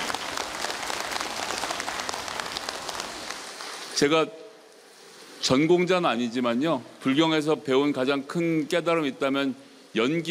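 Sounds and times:
audience applause for the monks: 0.0s - 4.0s
speech: 4.0s - 4.4s, 5.4s - 10.3s.

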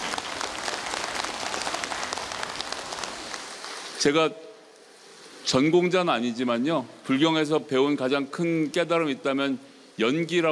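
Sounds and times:
crowd applauding: 0.0s - 4.0s
speech: 4.0s - 4.5s, 5.4s - 10.5s.

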